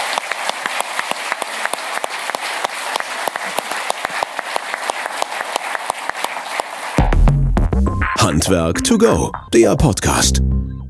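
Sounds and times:
audience applause: 0.0s - 7.1s
speech: 8.4s - 10.6s.

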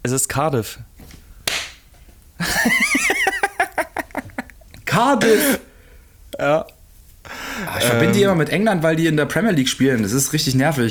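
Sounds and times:
speech: 0.0s - 0.9s, 2.4s - 3.2s, 5.0s - 5.7s, 6.4s - 6.7s, 7.6s - 10.8s
hand slapping forehead: 1.4s - 1.9s
laughter: 2.4s - 4.6s.

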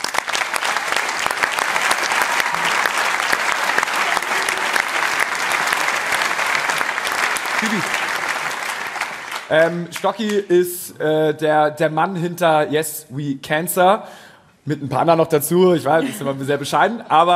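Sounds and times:
audience applause: 0.0s - 10.4s
speech: 9.5s - 17.3s.

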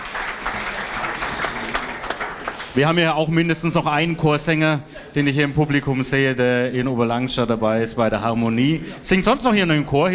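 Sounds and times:
audience applause: 0.0s - 3.0s
speech: 2.8s - 10.1s.

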